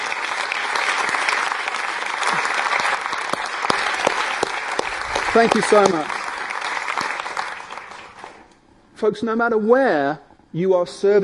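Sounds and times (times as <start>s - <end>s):
room full of people applauding: 0.0s - 8.5s
speech: 5.3s - 6.2s, 9.0s - 11.2s.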